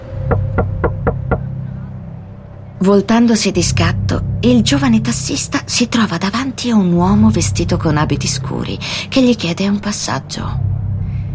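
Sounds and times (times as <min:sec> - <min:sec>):
knocks on a car window: 0:00.2 - 0:01.5
speech: 0:02.8 - 0:10.7.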